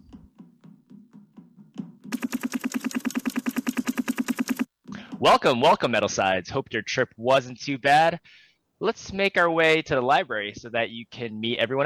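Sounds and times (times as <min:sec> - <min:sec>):
helicopter arriving: 0:02.1 - 0:04.7
speech: 0:05.2 - 0:11.8.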